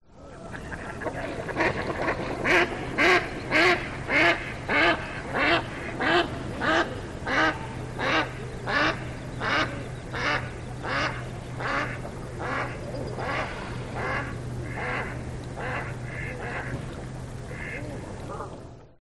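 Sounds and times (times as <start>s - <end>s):
mallard duck quacking: 0.6s - 16.7s, 17.5s - 18.5s.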